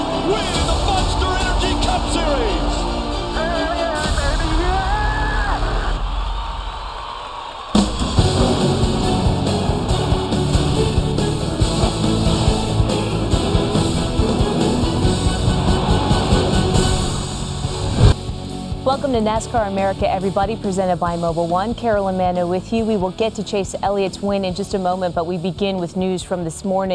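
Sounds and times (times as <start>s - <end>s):
race crowd roaring: 0.0s - 18.2s
speech: 0.3s - 0.8s, 2.0s - 3.8s, 18.9s - 26.9s.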